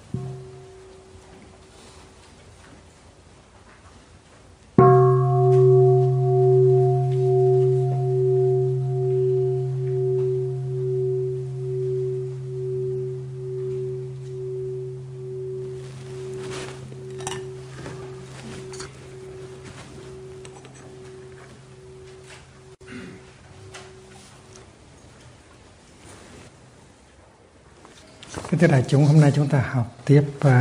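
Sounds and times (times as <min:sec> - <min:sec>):
meditation bell ringing: 0:00.0 - 0:02.1, 0:04.8 - 0:25.0
speech: 0:28.6 - 0:30.5.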